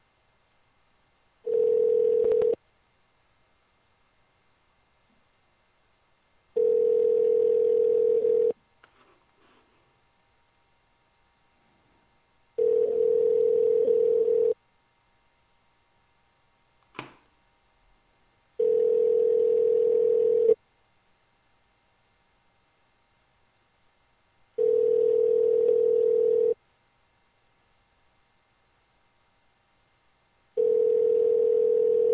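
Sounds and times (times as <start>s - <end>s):
low-pitched telephone tone: 1.4s - 2.6s, 6.6s - 8.6s, 12.6s - 14.6s, 18.6s - 20.6s, 24.6s - 26.6s, 30.6s - 32.1s.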